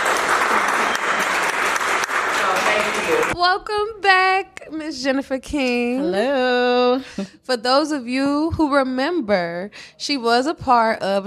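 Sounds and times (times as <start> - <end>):
audience applause: 0.0 - 3.4
speech: 3.1 - 11.2.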